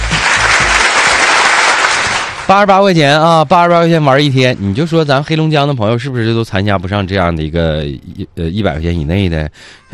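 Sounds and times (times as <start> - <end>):
applause greeting a pitch for a budget one-day group tour: 0.0 - 2.6
speech: 2.5 - 9.9.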